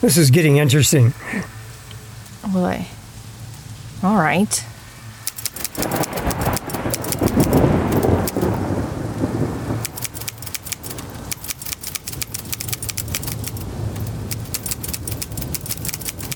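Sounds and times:
speech: 0:00.0 - 0:01.6, 0:02.4 - 0:03.0, 0:04.0 - 0:04.7
thunderstorm with rain: 0:05.2 - 0:16.3.

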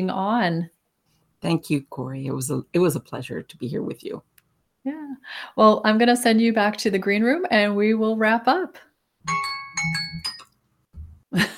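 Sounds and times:
speech: 0:00.0 - 0:00.8, 0:01.4 - 0:10.0, 0:11.3 - 0:11.5
timer going off: 0:09.3 - 0:11.1.

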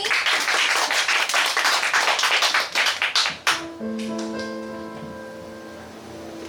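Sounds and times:
crowd applauding: 0:00.0 - 0:04.6.

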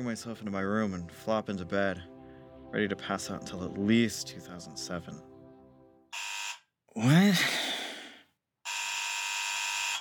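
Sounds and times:
speech: 0:00.0 - 0:05.3, 0:06.9 - 0:07.7
buzzing doorbell: 0:08.7 - 0:09.9.

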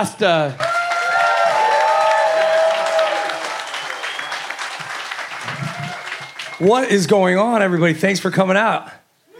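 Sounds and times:
speech: 0:00.0 - 0:00.7, 0:06.6 - 0:09.0
live audience applause welcoming a host on stage aboard a music cruise: 0:00.6 - 0:07.0.

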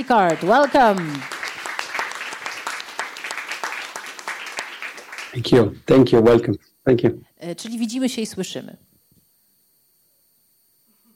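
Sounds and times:
speech: 0:00.0 - 0:01.3, 0:05.4 - 0:08.9
audience applause: 0:00.0 - 0:05.7.

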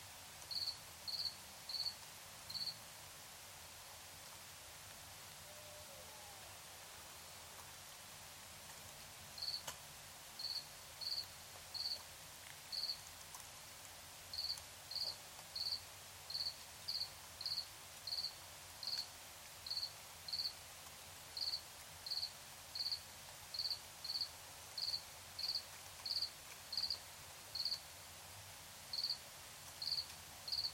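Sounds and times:
constant soft hiss: 0:00.0 - 0:30.7
crickets chirping in Tiny Ontario: 0:00.5 - 0:02.8, 0:09.4 - 0:09.6, 0:10.4 - 0:12.0, 0:12.7 - 0:13.0, 0:14.3 - 0:20.6, 0:21.4 - 0:27.0, 0:27.6 - 0:27.8, 0:28.9 - 0:29.2, 0:29.8 - 0:30.7.

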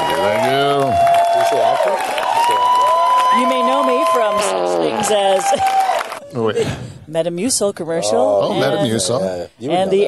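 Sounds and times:
audience applause: 0:00.0 - 0:06.2
speech: 0:06.6 - 0:10.0.

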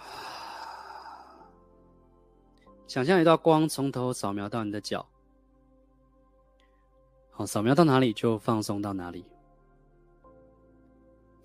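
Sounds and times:
slow deep exhale during a guided relaxation exercise: 0:00.0 - 0:01.5
speech: 0:02.9 - 0:05.1, 0:07.4 - 0:09.3.

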